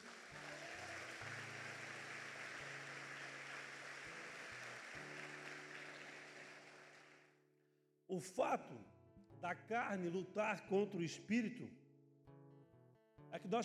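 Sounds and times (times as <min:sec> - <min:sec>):
church audience applauding: 0:00.0 - 0:07.3
speech: 0:08.1 - 0:11.8, 0:13.4 - 0:13.6.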